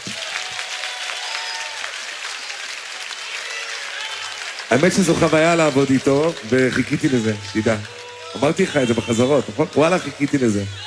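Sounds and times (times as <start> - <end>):
audience applause: 0.0 - 10.8
speech: 4.7 - 10.8.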